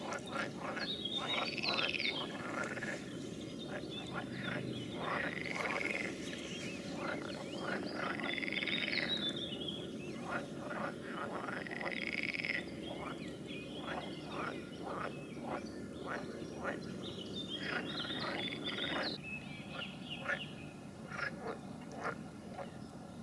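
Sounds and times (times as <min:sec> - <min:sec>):
frog chorus of rasping calls: 0:00.0 - 0:22.8.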